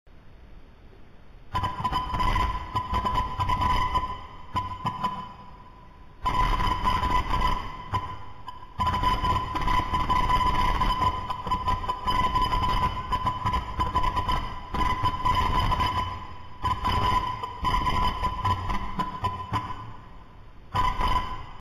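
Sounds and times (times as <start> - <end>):
signal sound: 1.5 - 21.6.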